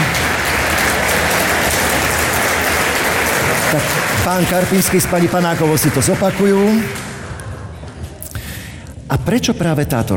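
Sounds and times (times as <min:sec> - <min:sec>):
applause: 0:00.0 - 0:07.6
speech: 0:03.7 - 0:07.0, 0:09.2 - 0:10.1.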